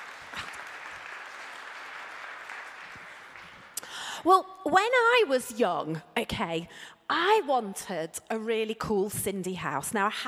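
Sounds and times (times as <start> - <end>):
audience clapping: 0.0 - 3.9
speech: 4.2 - 10.2.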